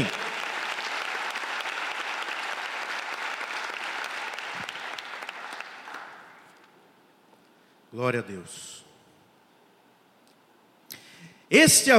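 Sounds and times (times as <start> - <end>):
audience applauding: 0.0 - 6.6
speech: 8.0 - 8.8, 11.5 - 11.9.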